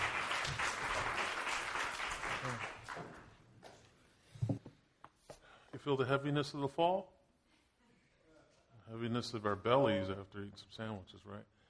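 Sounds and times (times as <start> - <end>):
audience applause: 0.0 - 3.4
speech: 5.8 - 7.2, 8.9 - 11.6.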